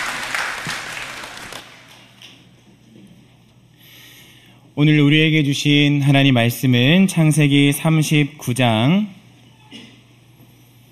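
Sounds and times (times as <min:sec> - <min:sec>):
audience applause: 0:00.0 - 0:02.0
speech: 0:04.8 - 0:09.8.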